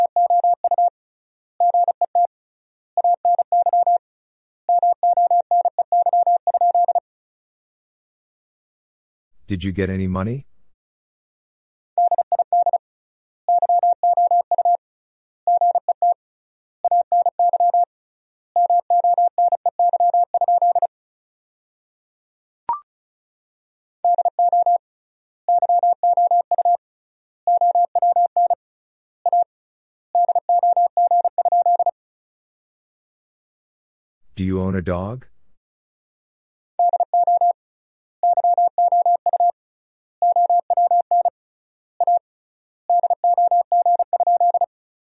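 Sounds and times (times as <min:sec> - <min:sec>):
rapid Morse code beeps at 35 words per minute: 0:00.0 - 0:00.9, 0:01.7 - 0:02.3, 0:03.0 - 0:04.0, 0:04.8 - 0:07.0, 0:12.0 - 0:12.8, 0:13.5 - 0:14.8, 0:15.5 - 0:16.2, 0:16.9 - 0:17.9, 0:18.6 - 0:20.9, 0:24.1 - 0:24.8, 0:25.5 - 0:26.8, 0:27.5 - 0:28.6, 0:29.3 - 0:29.5, 0:30.2 - 0:31.9, 0:36.8 - 0:37.6, 0:38.2 - 0:39.5, 0:40.2 - 0:41.3, 0:42.0 - 0:42.2, 0:42.9 - 0:44.7
speech: 0:09.5 - 0:10.5, 0:34.4 - 0:35.3.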